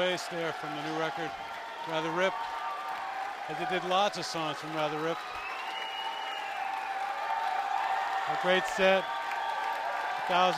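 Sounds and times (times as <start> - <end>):
speech: 0.0 - 2.6, 3.5 - 5.4, 8.3 - 9.2, 10.3 - 10.5
concert crowd cheering and applauding at the 930 Club after a band's set: 0.0 - 10.5.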